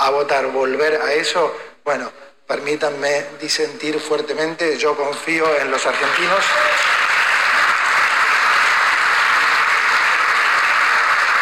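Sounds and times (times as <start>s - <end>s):
speech: 0.0s - 7.0s
applause: 5.4s - 11.3s.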